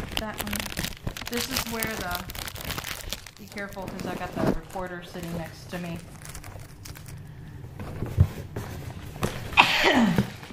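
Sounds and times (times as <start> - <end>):
speech: 0.2 - 2.8, 3.4 - 6.1
person sneezing: 9.5 - 10.3.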